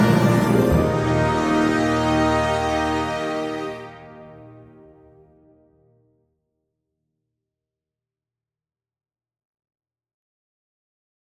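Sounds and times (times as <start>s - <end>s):
fanfare: 0.0s - 5.6s.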